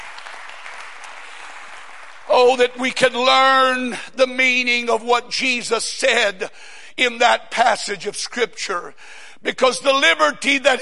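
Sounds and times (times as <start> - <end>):
audience clapping hands: 0.0 - 2.6
speech: 2.4 - 10.8.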